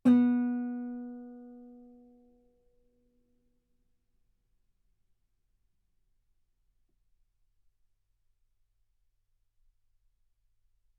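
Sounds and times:
guitar note B3: 0.0 - 1.8.

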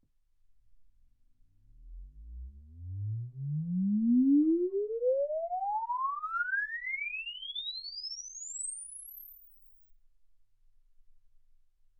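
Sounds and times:
exponential sine sweep from 10 Hz to 24 kHz: 1.8 - 9.8.

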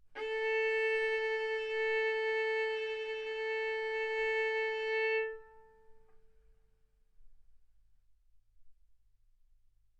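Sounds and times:
violin bowed mezzo-forte on the A string, A4 and B4: 0.2 - 6.1.

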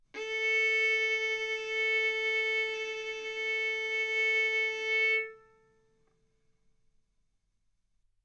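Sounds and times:
violin bowed mezzo-forte on the A string, A4 and B4: 0.2 - 5.8.

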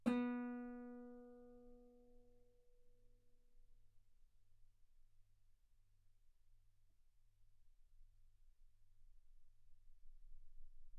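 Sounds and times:
guitar B3 note on B string played fortissimo: 0.0 - 1.7.

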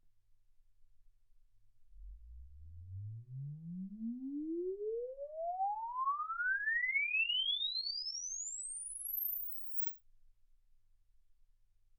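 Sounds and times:
exponential sine sweep from 10 Hz to 24 kHz: 2.0 - 9.9.

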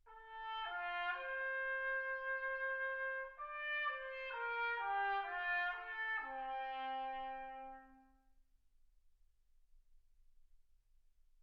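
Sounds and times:
trumpet: 0.0 - 8.3.

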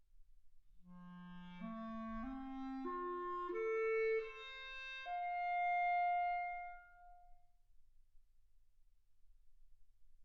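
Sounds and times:
clarinet: 0.9 - 7.4.

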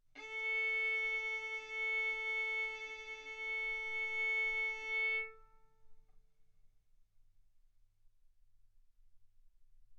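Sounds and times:
violin bowed mezzo-forte on the A string, A4 and B4: 0.2 - 5.7.

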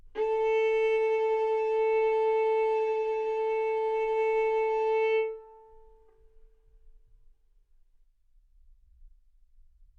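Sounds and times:
violin arco on A string: 0.0 - 6.2.

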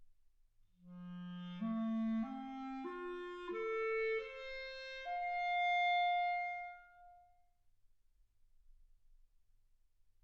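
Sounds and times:
clarinet: 0.8 - 7.5.

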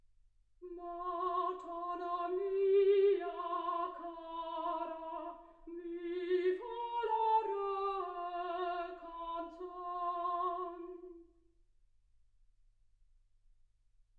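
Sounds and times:
soprano singing: 0.6 - 11.3.

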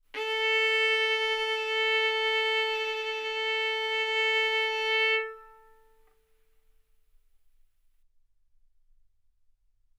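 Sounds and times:
violin arco on A string: 0.2 - 6.0.

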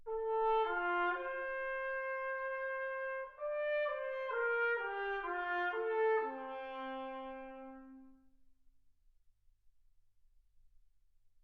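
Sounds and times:
trumpet: 0.0 - 8.4.

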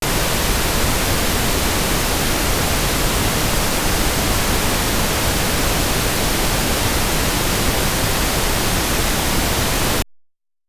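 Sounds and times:
pink noise at 48kHz: 0.0 - 10.0.

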